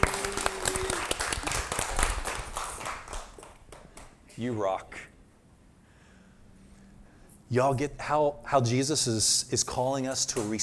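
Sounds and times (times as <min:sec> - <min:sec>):
audience applause: 0:00.0 - 0:04.1
speech: 0:04.4 - 0:05.1, 0:07.5 - 0:10.6.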